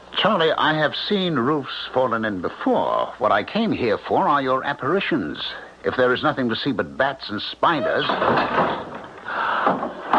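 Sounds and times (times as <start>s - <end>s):
speech: 0.2s - 8.8s, 9.7s - 10.0s
front door creaking shut: 7.7s - 10.1s.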